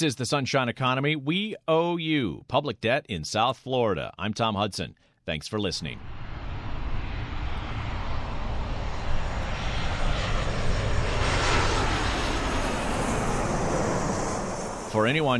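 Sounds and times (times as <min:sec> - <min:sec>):
speech: 0:00.0 - 0:06.2, 0:14.9 - 0:15.3
Southwest Airlines Boeing 737 jet roaring on final approach: 0:05.9 - 0:15.3.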